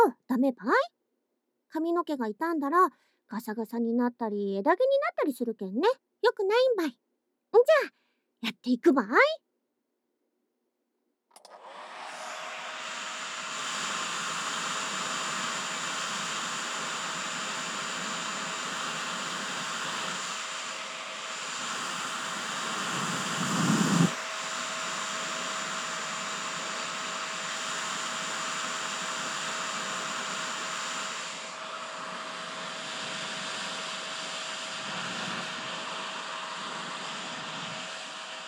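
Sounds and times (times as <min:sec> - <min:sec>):
speech: 0:00.0 - 0:01.0, 0:01.7 - 0:09.4
hair dryer blowing: 0:11.4 - 0:38.4.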